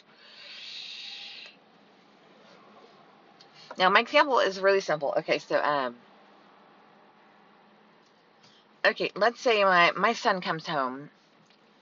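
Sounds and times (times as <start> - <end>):
asthma inhaler puff: 0.1 - 1.6
speech: 3.8 - 6.1, 8.9 - 11.2.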